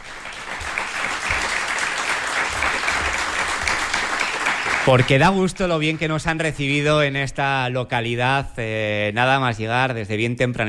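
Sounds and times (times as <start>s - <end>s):
audience applause: 0.0s - 6.5s
speech: 4.8s - 10.6s.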